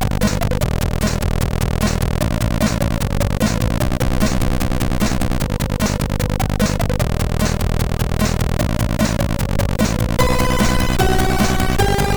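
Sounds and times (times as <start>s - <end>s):
fast loader sound on SID MOS6581 chip: 0.1s - 12.1s.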